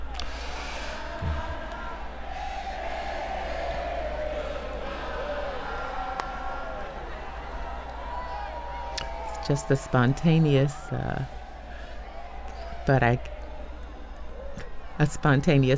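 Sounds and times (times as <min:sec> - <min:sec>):
crowd singing: 0:00.7 - 0:07.8
speech: 0:09.5 - 0:11.4, 0:12.8 - 0:13.4, 0:15.0 - 0:15.7.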